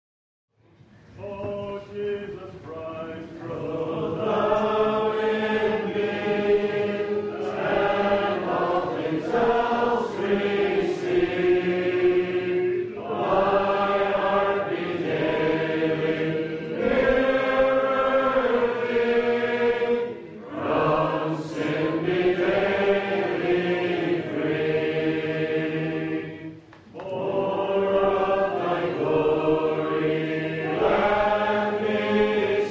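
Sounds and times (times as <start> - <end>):
Gospel Hall hymn singing: 1.2 - 32.6.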